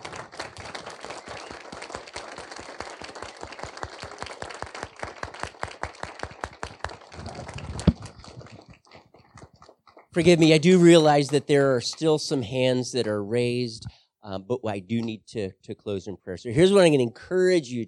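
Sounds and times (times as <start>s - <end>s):
audience applause: 0.0s - 12.4s
speech: 10.2s - 17.8s.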